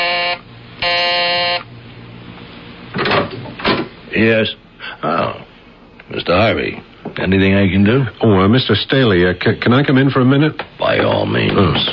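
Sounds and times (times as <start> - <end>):
doorbell buzz: 0.0 - 1.7
speech: 4.2 - 5.4, 6.1 - 11.9.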